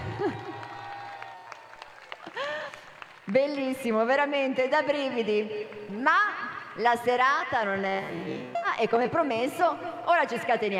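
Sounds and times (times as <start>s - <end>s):
audience applause: 0.0s - 3.3s
speech: 3.3s - 10.7s.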